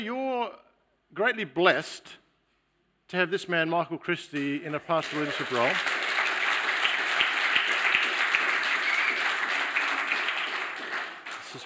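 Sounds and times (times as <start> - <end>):
speech: 0.0 - 2.2, 3.1 - 6.0
unsolicited audience applause: 5.0 - 11.6.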